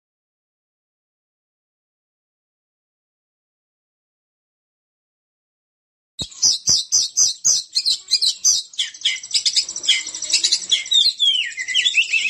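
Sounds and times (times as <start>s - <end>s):
Oriental magpie-robin whistling and chattering: 6.2s - 12.2s.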